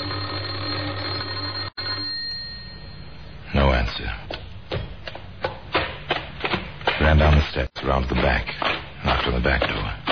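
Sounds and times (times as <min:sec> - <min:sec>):
electric doorbell buzzing: 0:00.0 - 0:03.4
speech: 0:03.5 - 0:04.4, 0:07.1 - 0:10.0.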